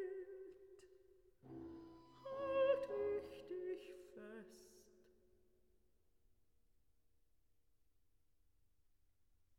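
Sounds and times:
ensemble of eight instruments: 1.4 - 2.4
person singing: 2.0 - 4.9.

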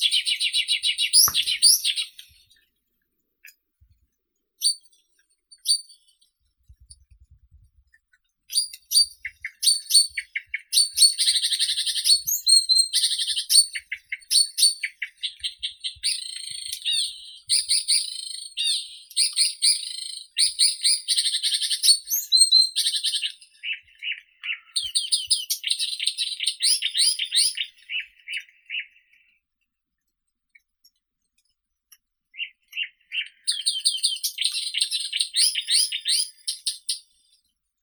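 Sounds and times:
Blyth's reed warbler Acrocephalus dumetorum singing: 0.0 - 2.6, 8.5 - 29.2, 32.4 - 37.1.

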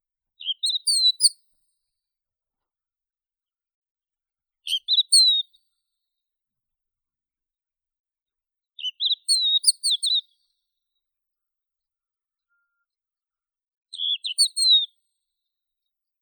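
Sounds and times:
crested lark Galerida cristata: 0.4 - 1.3, 4.7 - 5.4, 8.8 - 10.3, 13.9 - 15.0.

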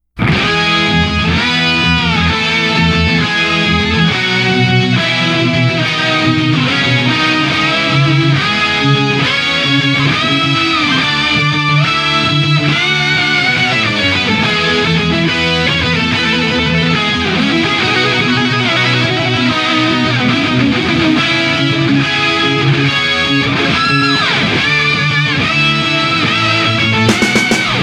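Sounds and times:
guitar solo: 0.2 - 27.8.

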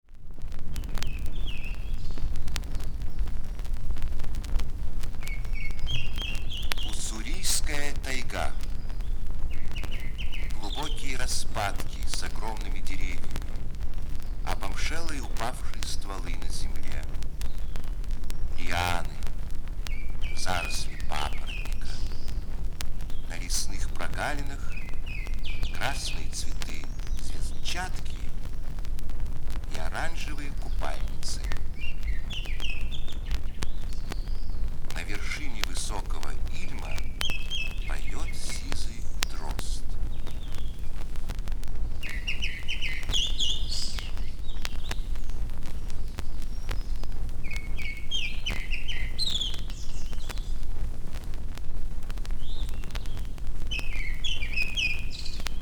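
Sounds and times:
bird voices in nature: 0.1 - 55.5.

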